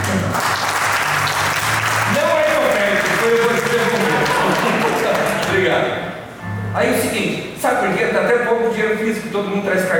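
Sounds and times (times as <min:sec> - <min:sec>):
audience applause: 0:00.0 - 0:05.8
laughter: 0:03.3 - 0:05.6
speech: 0:06.8 - 0:09.9.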